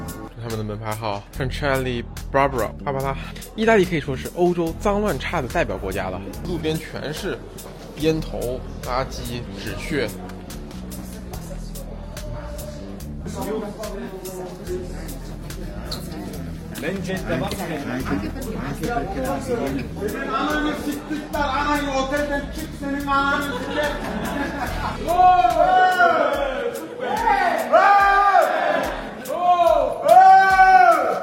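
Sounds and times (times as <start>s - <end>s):
speech: 0.5s - 10.3s, 16.8s - 28.6s
laughter: 15.8s - 27.7s
drunk people shouting in the street: 23.1s - 31.2s.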